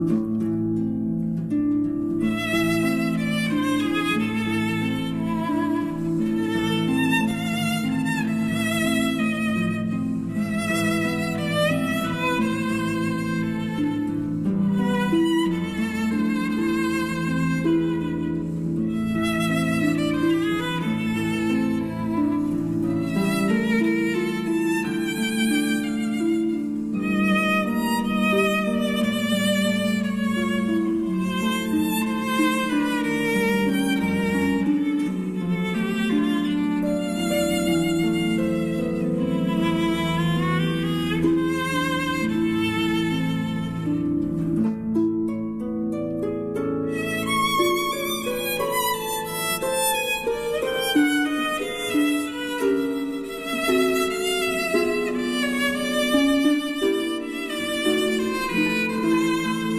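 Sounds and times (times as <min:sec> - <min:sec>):
berceuse for violin and harp: 0:00.0 - 0:59.7.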